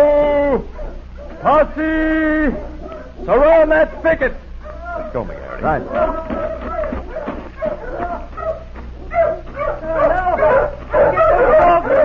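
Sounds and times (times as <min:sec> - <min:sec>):
several dogs barking and yipping: 0:00.5 - 0:12.0
speech: 0:01.4 - 0:04.4, 0:05.1 - 0:06.7.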